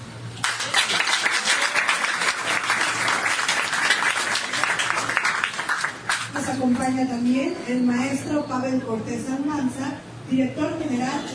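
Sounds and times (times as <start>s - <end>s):
audience applause: 0.4s - 6.3s
speech: 6.9s - 11.3s.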